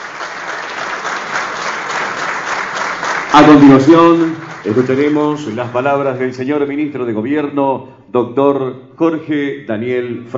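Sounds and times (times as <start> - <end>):
audience applause: 0.0 - 6.5
speech: 3.3 - 10.3.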